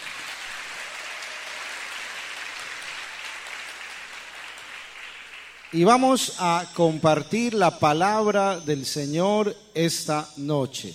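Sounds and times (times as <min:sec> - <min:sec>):
audience applause: 0:00.0 - 0:05.8
speech: 0:05.7 - 0:10.9.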